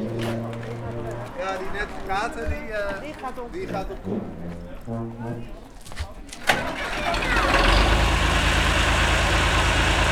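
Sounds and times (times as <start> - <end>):
speech: 1.4 - 5.6
tractor engine running: 6.4 - 10.1.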